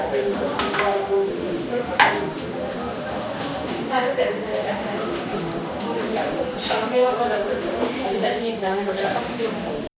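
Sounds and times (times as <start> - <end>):
coffee shop ambience: 0.0 - 9.9.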